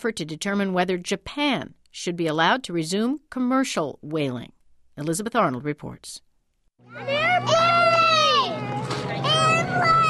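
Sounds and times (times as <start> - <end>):
speech: 0.0 - 6.2, 6.8 - 7.8
crowd of schoolchildren shouting and chattering: 6.8 - 10.0.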